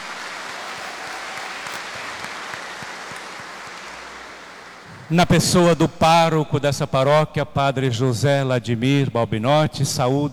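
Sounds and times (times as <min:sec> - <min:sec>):
audience applauding: 0:00.0 - 0:05.6
speech: 0:05.1 - 0:10.3.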